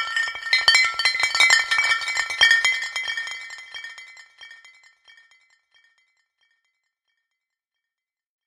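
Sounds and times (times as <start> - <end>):
bouncing glass bottles clinking against each other with reverb: 0.0 - 4.6.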